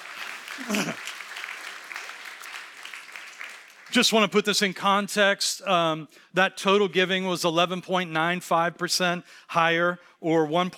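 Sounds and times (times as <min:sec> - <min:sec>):
audience applause: 0:00.0 - 0:04.0
speech: 0:00.6 - 0:01.1, 0:03.9 - 0:10.7.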